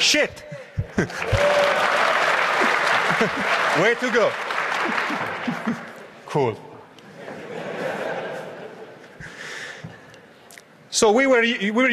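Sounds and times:
speech: 0.0 - 2.0, 3.2 - 6.7, 11.0 - 11.9
laughter: 0.5 - 6.2, 7.1 - 9.6
canned applause sound effect set off by a spoken word: 1.0 - 6.0.

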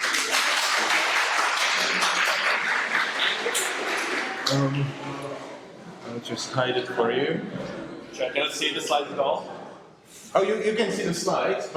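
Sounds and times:
audience applause: 0.0 - 4.8
speech: 4.5 - 9.6, 10.3 - 11.7.

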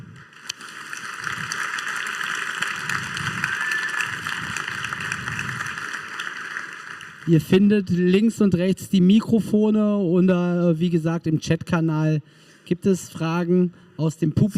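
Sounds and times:
audience applause: 0.0 - 7.5
speech: 7.3 - 14.5.

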